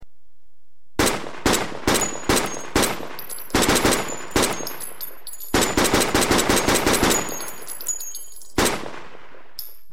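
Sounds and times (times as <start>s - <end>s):
PPSh-41 submachine gun firing: 1.0s - 4.9s, 5.5s - 8.0s, 8.6s - 9.6s.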